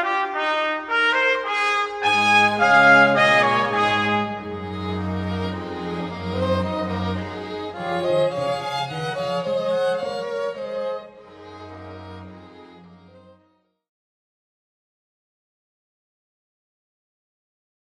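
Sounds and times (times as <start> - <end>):
two trumpets: 0.0 - 10.3
string quartet playing: 1.1 - 13.4.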